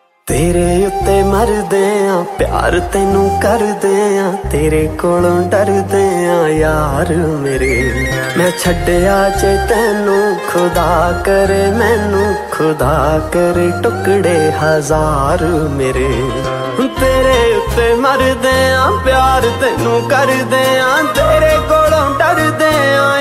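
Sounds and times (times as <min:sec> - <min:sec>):
Punjabi romantic song ringtone: 0:00.2 - 0:23.1.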